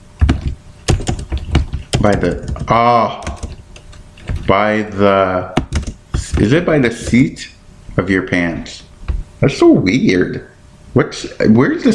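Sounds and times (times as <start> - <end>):
typing on a laptop keyboard: 0.2 - 4.5, 5.6 - 6.5
speech: 2.0 - 3.3, 4.5 - 5.6, 6.4 - 8.8, 9.4 - 11.9.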